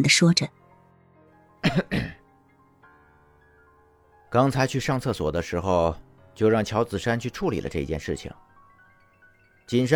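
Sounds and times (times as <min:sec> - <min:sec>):
speech: 0:00.0 - 0:00.6, 0:01.7 - 0:02.2, 0:04.3 - 0:08.5, 0:09.7 - 0:09.9
throaty coughs: 0:01.6 - 0:02.3.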